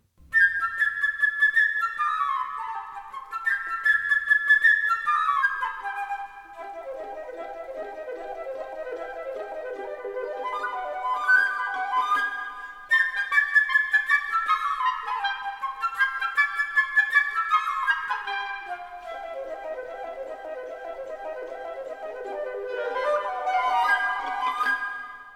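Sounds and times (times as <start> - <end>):
flute playing a bird melody: 0.2 - 25.3.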